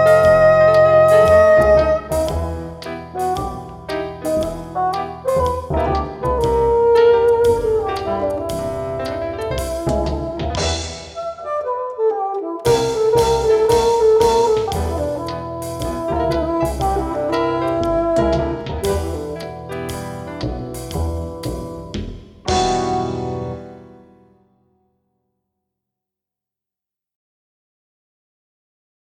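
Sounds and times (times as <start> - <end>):
bassoon: 0.0 - 20.0, 22.5 - 23.9.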